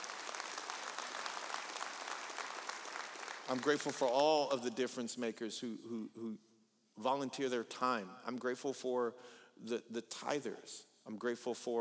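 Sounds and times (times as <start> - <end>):
audience clapping: 0.0 - 4.6
speech: 3.5 - 11.7.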